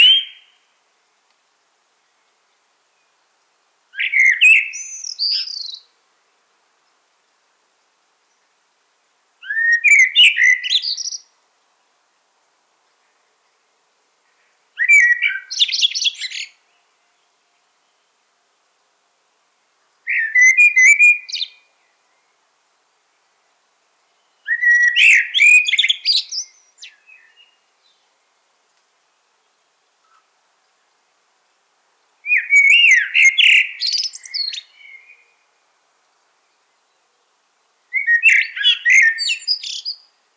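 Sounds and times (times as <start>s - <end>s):
common blackbird whistled song: 0.0s - 0.6s, 3.9s - 6.0s, 9.4s - 11.3s, 14.8s - 18.1s, 20.1s - 22.3s, 24.2s - 28.0s, 32.2s - 35.4s, 37.9s - 40.1s.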